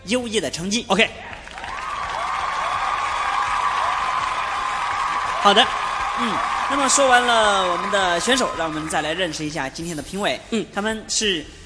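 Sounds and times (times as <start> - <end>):
speech: 0.0 - 1.4, 5.4 - 11.6
audience applause for competition contestants: 1.2 - 9.4.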